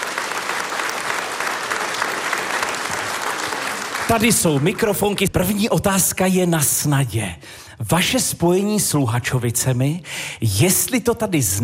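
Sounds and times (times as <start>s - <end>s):
audience applause in historic hall in Luhačovice: 0.0s - 5.3s
speech: 4.1s - 11.6s.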